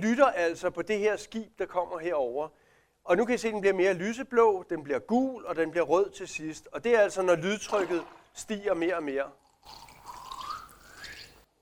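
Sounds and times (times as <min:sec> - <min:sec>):
speech: 0:00.0 - 0:09.8
air bubbles dragged underwater by a porpoise: 0:09.7 - 0:11.4.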